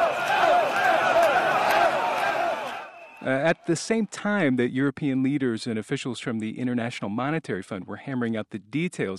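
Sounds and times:
street protest crowd shouting in Dublin: 0.0s - 3.2s
speech: 3.2s - 9.1s.

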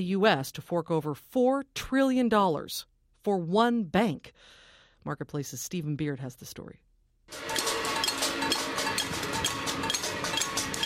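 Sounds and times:
speech: 0.0s - 7.5s
protesters banging pots and pans: 7.3s - 10.8s.

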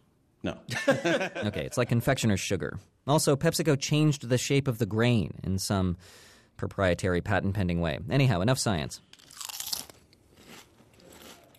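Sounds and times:
speech: 0.4s - 9.1s
laughter: 0.7s - 2.0s
Lay's reduced salt potato chip crunching: 9.1s - 11.5s.

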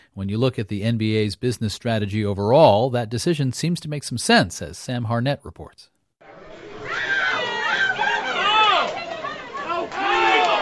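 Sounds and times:
speech: 0.2s - 5.9s
sports bar crowd chatter: 6.2s - 10.6s.

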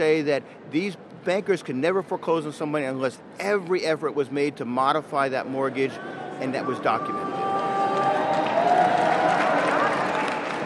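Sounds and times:
speech: 0.0s - 7.4s
many hands clapping: 7.5s - 10.6s.

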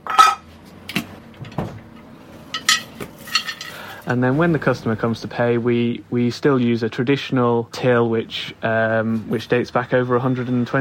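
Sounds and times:
hard-boiled sweets clattering onto pan of traditional Avery weighing scales: 2.6s - 4.0s
speech: 4.1s - 10.7s.

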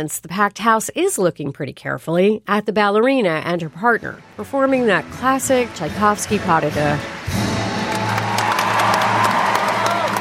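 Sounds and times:
speech: 0.0s - 7.5s
ballet audience applauding: 5.6s - 10.1s
ballet audience cheering and shouting: 6.6s - 10.1s.

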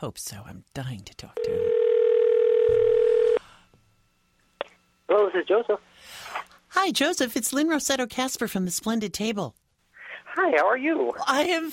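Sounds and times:
speech: 0.0s - 1.9s, 5.1s - 9.6s, 10.4s - 11.7s
telephone ring-back tone while calling someone: 1.4s - 3.4s.

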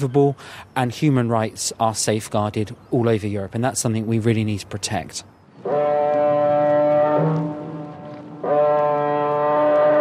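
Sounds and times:
speech: 0.0s - 5.4s
car ferry foghorn in fog: 5.6s - 9.9s.

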